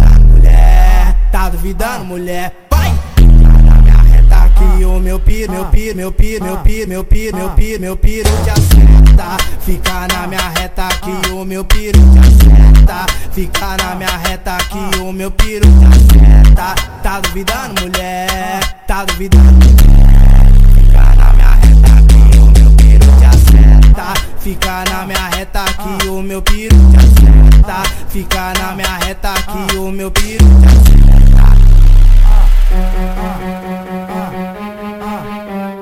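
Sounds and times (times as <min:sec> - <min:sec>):
deep bass: 0:00.0 - 0:01.8, 0:02.7 - 0:09.8, 0:11.8 - 0:13.6, 0:15.6 - 0:17.2, 0:19.3 - 0:24.8, 0:26.6 - 0:28.6, 0:30.1 - 0:34.4.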